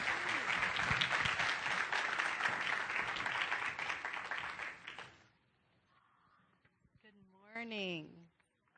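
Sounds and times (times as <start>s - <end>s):
church audience applause as a woman speaker takes the stage: 0.0s - 5.2s
woman speaker talking: 7.0s - 8.3s.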